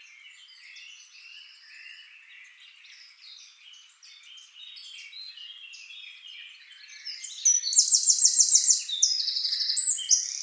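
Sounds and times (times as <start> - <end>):
other birds twittering softly: 0.0 - 10.4
Eurasian wren singing: 7.2 - 10.4.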